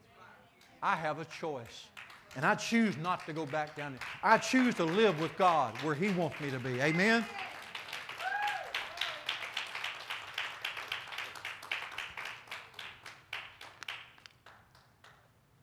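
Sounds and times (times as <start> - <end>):
rhythmic audience clapping: 0.6 - 15.3
speech: 0.8 - 7.5
high whoop: 7.4 - 9.4.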